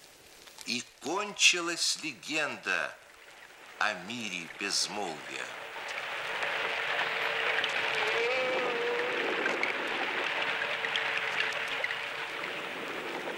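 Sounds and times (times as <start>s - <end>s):
speech: 0.7s - 3.0s, 3.8s - 5.6s
underwater ambience recorded by hydrophone: 2.2s - 13.3s.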